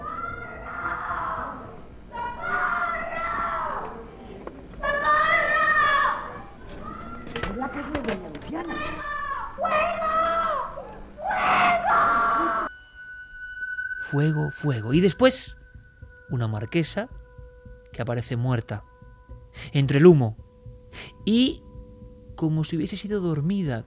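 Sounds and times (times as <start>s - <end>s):
woman screaming: 0.0s - 4.1s, 4.8s - 7.5s, 8.5s - 12.7s
speech: 14.2s - 15.6s, 16.3s - 17.2s, 18.0s - 18.9s, 19.6s - 20.4s, 21.0s - 21.6s, 22.4s - 23.8s.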